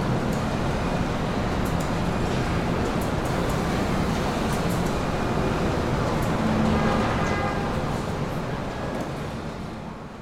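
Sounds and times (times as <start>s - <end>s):
assembly plant factory ambience: 0.0s - 10.2s.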